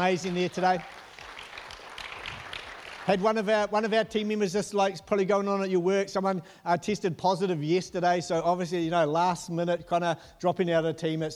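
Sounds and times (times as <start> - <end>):
speech: 0.0 - 1.0, 3.1 - 11.3
audience applause: 0.0 - 3.7.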